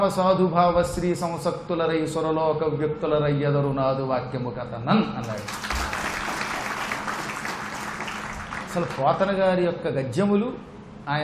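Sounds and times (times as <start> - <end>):
speech: 0.0 - 5.7, 8.7 - 11.2
audience applause during a Telugu devotional verse recitation: 5.3 - 9.3.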